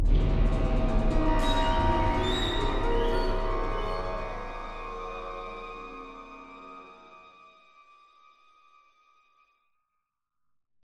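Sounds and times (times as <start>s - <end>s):
dark music stinger: 0.0s - 7.2s.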